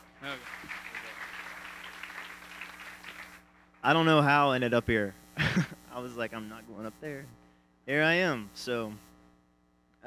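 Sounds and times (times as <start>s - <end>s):
audience clapping: 0.0s - 4.5s
laughter: 0.2s - 3.3s, 3.9s - 6.2s
speech: 3.8s - 9.1s.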